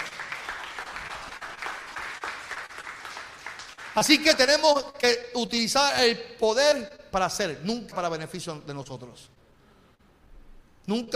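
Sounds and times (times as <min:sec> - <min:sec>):
audience applauding: 0:00.0 - 0:04.4
speech: 0:04.0 - 0:09.4, 0:10.9 - 0:11.1.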